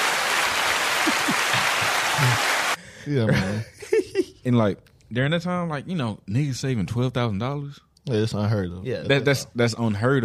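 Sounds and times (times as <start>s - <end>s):
applause sound effect from soundboard: 0.0s - 2.8s
laughter: 0.6s - 4.4s
speech: 3.1s - 3.8s, 4.4s - 10.2s.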